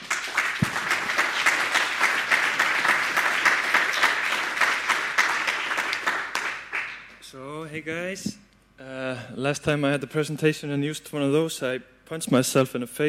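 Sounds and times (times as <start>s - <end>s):
crowd applauding: 0.0s - 7.1s
speech: 7.8s - 8.4s, 9.4s - 13.0s.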